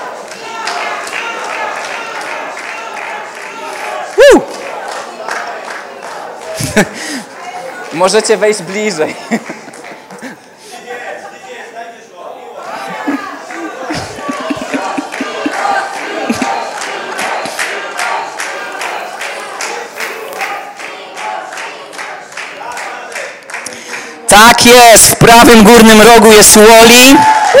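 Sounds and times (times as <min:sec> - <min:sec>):
audience cheering: 0:00.0 - 0:05.6, 0:12.7 - 0:21.4, 0:24.3 - 0:27.5
audience applause: 0:00.0 - 0:07.2, 0:12.8 - 0:27.5
laughter: 0:06.4 - 0:07.4, 0:09.1 - 0:10.6, 0:12.6 - 0:18.7
speech: 0:06.8 - 0:07.2, 0:07.9 - 0:09.7, 0:24.4 - 0:27.4.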